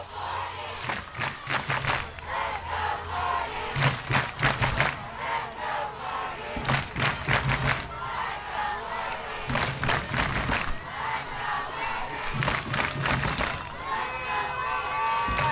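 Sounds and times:
a few hundred baseball fans under an awning in Rockwall cheering: 0:00.0 - 0:15.5.

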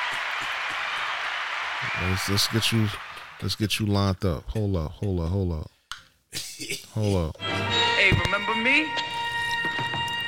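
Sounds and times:
applause: 0:00.0 - 0:03.6
speech: 0:01.9 - 0:09.2.

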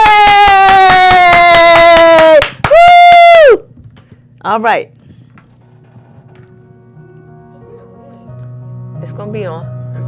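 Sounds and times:
audience clapping to welcome a singer: 0:00.0 - 0:03.3
speech: 0:04.5 - 0:05.0, 0:09.0 - 0:09.7.

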